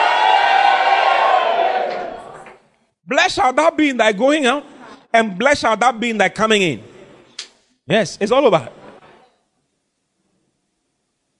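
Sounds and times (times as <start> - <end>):
audience shouting and cheering: 0.0 - 2.5
speech: 3.3 - 6.9, 7.9 - 8.8.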